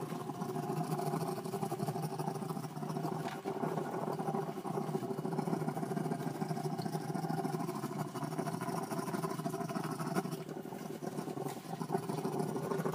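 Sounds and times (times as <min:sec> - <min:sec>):
Bamboo rat mating call: 0:00.2 - 0:12.9.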